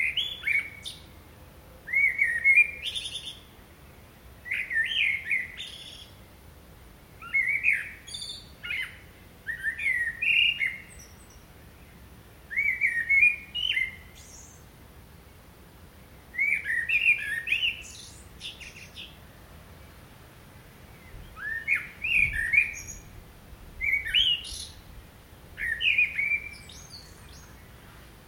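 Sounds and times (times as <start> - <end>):
Common blackbird singing: 0.0 - 1.1, 1.8 - 3.5, 4.4 - 6.2, 7.2 - 14.6, 16.3 - 19.2, 20.9 - 23.2, 23.8 - 24.9, 25.6 - 28.0.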